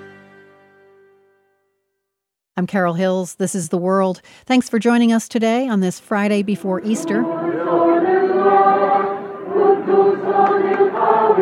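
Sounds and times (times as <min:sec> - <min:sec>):
speech: 0:02.6 - 0:08.1
crowd of Palestinian Christians singing in the old city of Jerusalem on Good Friday: 0:06.6 - 0:11.4.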